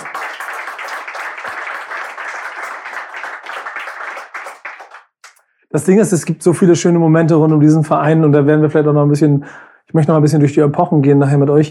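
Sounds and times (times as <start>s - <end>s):
applause: 0.0s - 5.4s
speech: 5.7s - 11.6s.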